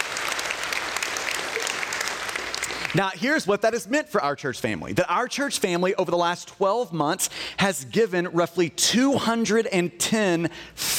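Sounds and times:
audience applause: 0:00.0 - 0:03.0
speech: 0:03.0 - 0:10.9.

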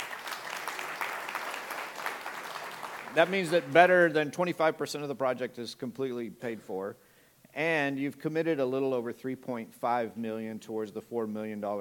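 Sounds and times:
crowd applauding: 0:00.0 - 0:03.8
speech: 0:03.1 - 0:07.0, 0:07.6 - 0:11.8.

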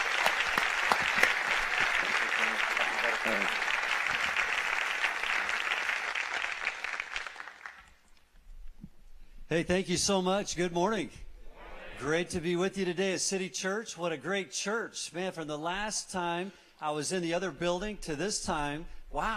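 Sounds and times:
church congregation applause welcoming a guest speaker: 0:00.0 - 0:08.1
speech: 0:09.5 - 0:11.2, 0:12.0 - 0:19.3.

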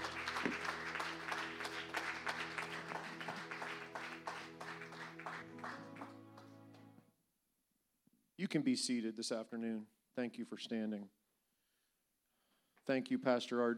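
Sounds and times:
audience clapping hands in praise: 0:00.0 - 0:07.0
speech: 0:08.4 - 0:11.2, 0:12.8 - 0:13.7.

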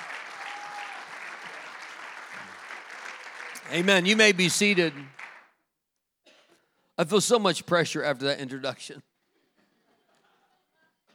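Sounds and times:
sustained audience applause: 0:00.0 - 0:05.5
speech: 0:03.7 - 0:05.2, 0:07.0 - 0:09.1.

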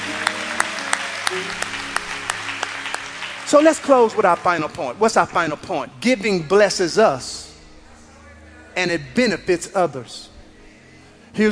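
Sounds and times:
audience applause, hand clapping: 0:00.0 - 0:05.4
speech: 0:01.3 - 0:01.7, 0:03.5 - 0:07.5, 0:08.8 - 0:10.3, 0:11.4 - 0:11.5.

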